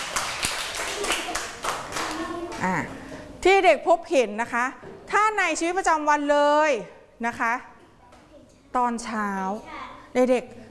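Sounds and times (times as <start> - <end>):
children clapping hands: 0.0 - 2.8
speech: 2.6 - 7.7, 8.7 - 10.6.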